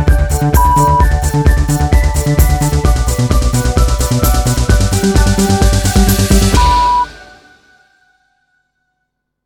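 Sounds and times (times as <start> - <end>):
techno music: 0.0 - 7.3.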